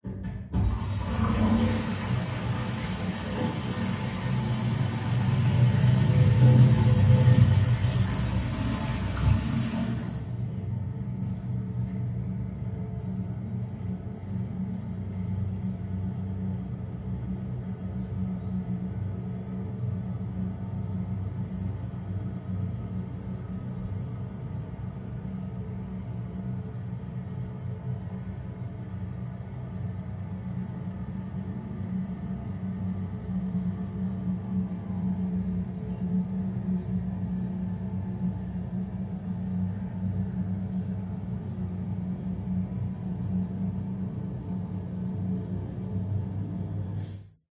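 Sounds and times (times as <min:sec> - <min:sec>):
household toilet flush muffled in adjacent room: 0:00.1 - 0:12.5, 0:13.2 - 0:47.3
toilet cistern filling muffled in adjacent room: 0:00.6 - 0:10.5.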